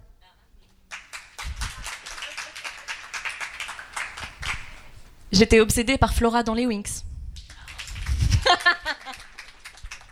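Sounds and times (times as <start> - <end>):
crowd applause: 0.9 - 5.1, 7.7 - 10.1
speech: 5.4 - 7.1.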